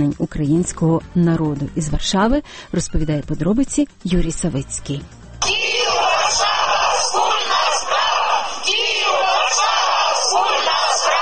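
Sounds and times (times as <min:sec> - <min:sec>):
speech: 0:00.0 - 0:05.2
crowd shouting at street rally in Warsaw: 0:05.4 - 0:11.2.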